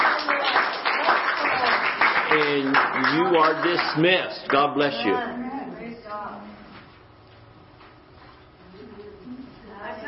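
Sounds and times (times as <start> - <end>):
audience clapping: 0.0 - 5.1
speech: 2.4 - 5.5.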